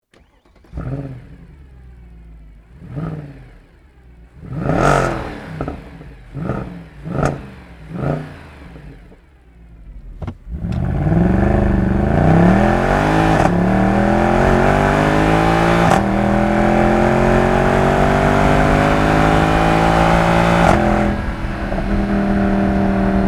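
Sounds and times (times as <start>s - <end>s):
Mercedes-Benz C63 Black engine: 0.1s - 23.2s.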